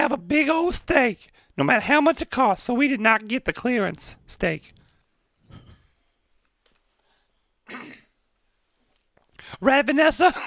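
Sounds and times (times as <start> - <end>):
speech: 0.0 - 4.8, 7.7 - 8.0, 9.4 - 10.4
person clearing throat: 7.6 - 8.2.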